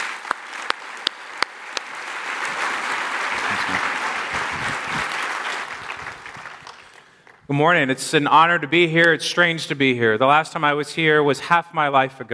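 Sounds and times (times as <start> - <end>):
audience applauding to welcome a speaker home: 0.0 - 7.4
speech: 7.5 - 12.3.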